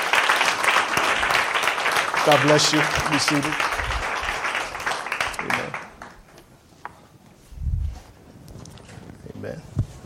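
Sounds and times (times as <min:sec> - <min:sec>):
audience applauding in welcome: 0:00.0 - 0:06.4
speech: 0:02.2 - 0:03.8.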